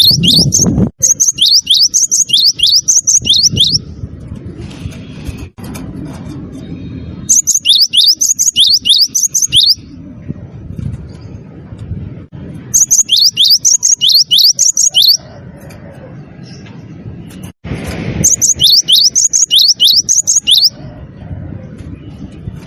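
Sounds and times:
bird chirping densely and rapidly at high pitch: 0.0s - 3.9s, 7.3s - 10.0s, 12.7s - 15.3s, 18.2s - 20.8s.

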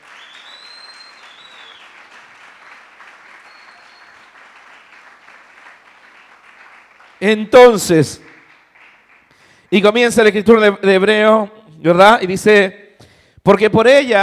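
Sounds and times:
audience applause: 0.0s - 9.6s
speech: 7.2s - 8.3s, 9.7s - 12.8s, 13.4s - 14.2s.

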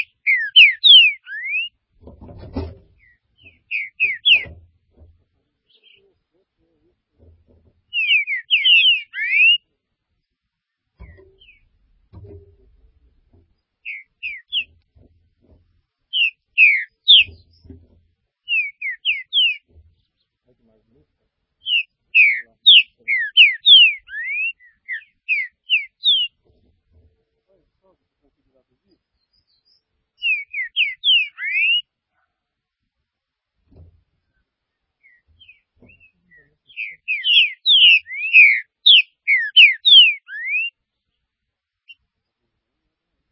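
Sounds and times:
green-winged saltator whistled song: 0.0s - 1.8s, 3.0s - 4.6s, 7.9s - 9.6s, 11.1s - 11.6s, 13.8s - 14.8s, 16.1s - 17.7s, 18.5s - 19.7s, 21.6s - 26.4s, 29.2s - 31.9s, 35.0s - 40.8s.

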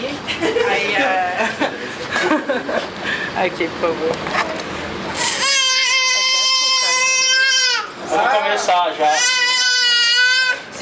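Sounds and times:
laughter: 0.2s - 3.2s
speech: 3.4s - 4.4s, 8.1s - 9.3s
baby crying in a theatre audience: 5.2s - 8.0s, 9.0s - 10.7s.

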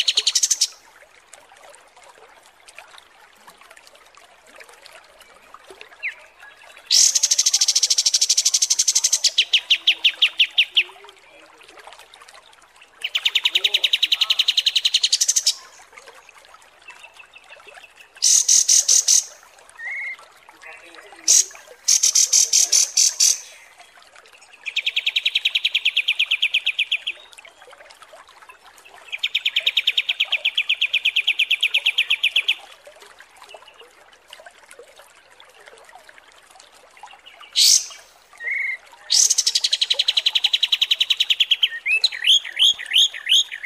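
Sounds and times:
kapas tembak songbird trilling: 0.0s - 0.8s, 6.9s - 10.8s, 13.0s - 15.8s, 18.2s - 23.7s, 24.7s - 27.2s, 29.1s - 32.6s, 37.6s - 43.6s.

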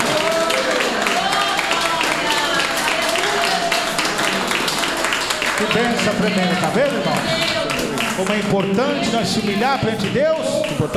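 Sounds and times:
congregation clapping at a church service: 0.0s - 10.9s
speech: 5.6s - 7.6s, 8.2s - 10.9s.

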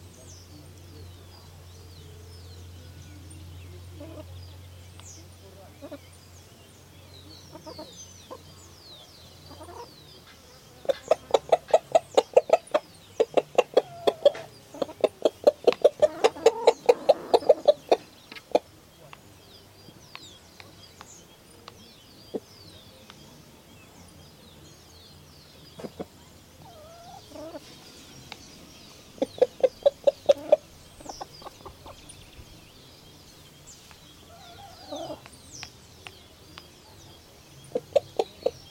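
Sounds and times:
faint bird chirps: 0.0s - 38.6s
chicken clucking: 7.4s - 8.5s, 9.4s - 19.2s, 25.6s - 32.4s, 34.3s - 38.6s.

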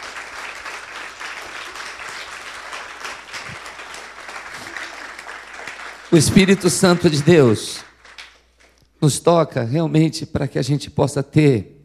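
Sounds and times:
church congregation applause during a Sunday morning worship service: 0.0s - 8.8s
speech: 6.1s - 7.8s, 9.0s - 11.8s.

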